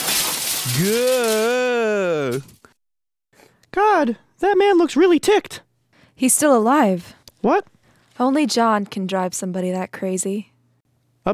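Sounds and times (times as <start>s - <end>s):
refreshment cart smashed with the butt of a rifle: 0.0s - 1.5s
speech: 0.7s - 2.6s, 3.8s - 10.5s.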